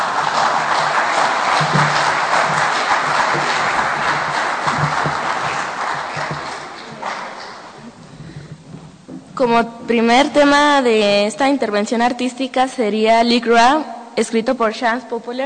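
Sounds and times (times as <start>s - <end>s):
audience applause: 0.0s - 8.4s
speech: 9.4s - 15.4s.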